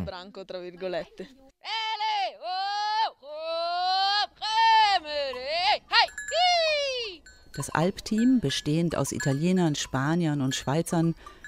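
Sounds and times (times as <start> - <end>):
speech: 0.0 - 1.8, 7.6 - 11.4
goat herder's repetitive calls luring goats: 3.7 - 11.0.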